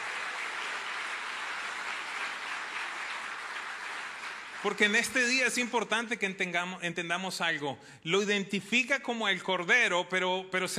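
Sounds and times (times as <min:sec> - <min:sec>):
audience applause: 0:00.0 - 0:05.4
speech: 0:04.6 - 0:10.7.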